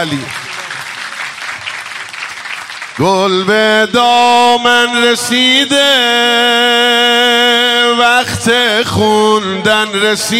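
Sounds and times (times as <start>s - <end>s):
speech: 0.0s - 0.4s, 3.0s - 10.3s
hands clapping during a devotional celebration song: 0.0s - 3.2s.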